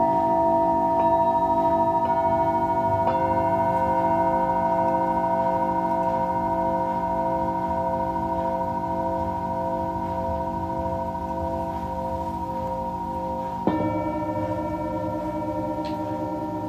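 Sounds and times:
Tibetan singing bowls ringing: 0.0 - 16.6.

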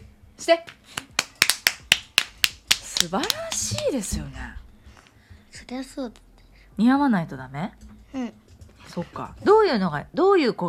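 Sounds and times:
speech: 0.4 - 1.1, 3.0 - 4.6, 5.6 - 6.2, 6.8 - 10.6
sharp hand claps: 0.7 - 4.1.

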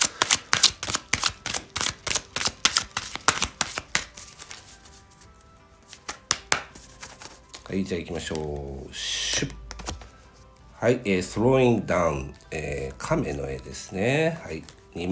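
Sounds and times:
oracle cards being handled and drawn from a deck: 0.0 - 5.0, 5.8 - 8.6, 9.3 - 10.2
speech: 7.7 - 9.6, 10.8 - 15.1.

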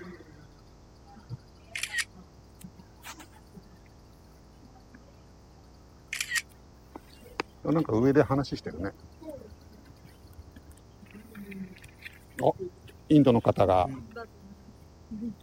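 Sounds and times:
camera shutter clicks from a photo being taken at a temple event: 1.8 - 2.1, 6.1 - 6.5
speech: 7.7 - 9.2, 12.4 - 14.1, 15.1 - 15.4.

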